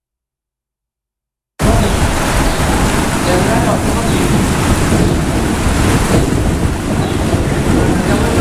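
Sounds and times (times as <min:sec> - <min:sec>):
rain in a thunderstorm over Galicia: 0:01.6 - 0:08.3
thunder rumbling over Galicia: 0:01.6 - 0:08.3.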